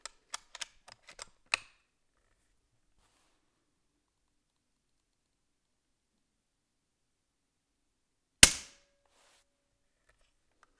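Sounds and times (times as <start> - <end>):
gun shots with an air tube bottle brush depinger: 8.4 - 8.7.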